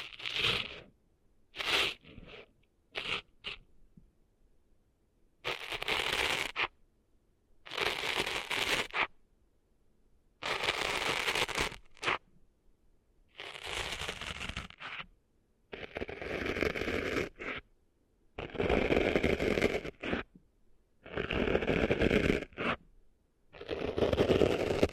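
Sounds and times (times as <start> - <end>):
gritty crackling scratching cleaning sand out of ears: 0.0 - 0.9, 1.6 - 3.6, 5.4 - 6.7, 7.7 - 9.1, 10.4 - 12.2, 13.3 - 15.1, 15.7 - 17.7, 18.4 - 20.3, 21.0 - 22.8, 23.6 - 24.9.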